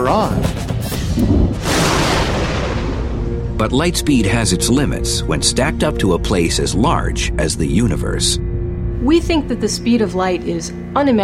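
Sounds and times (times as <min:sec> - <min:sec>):
speech: 0:00.0 - 0:00.6, 0:03.6 - 0:08.4, 0:09.0 - 0:11.2
thunder: 0:01.5 - 0:04.7.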